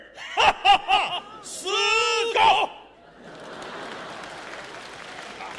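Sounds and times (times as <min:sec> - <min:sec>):
laughter: 0:00.2 - 0:05.5
audience applause: 0:03.2 - 0:05.5.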